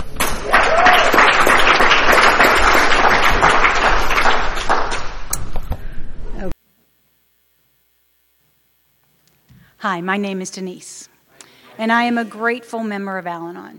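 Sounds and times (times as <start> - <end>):
audience applause at an Al-Anon meeting: 0.2 - 5.3
speech: 9.8 - 11.1, 11.8 - 13.7.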